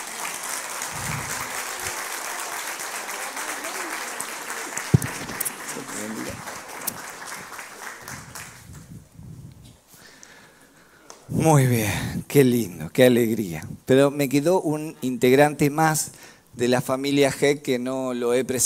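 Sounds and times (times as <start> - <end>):
audience applauding: 0.0 - 8.9
speech: 11.4 - 18.6.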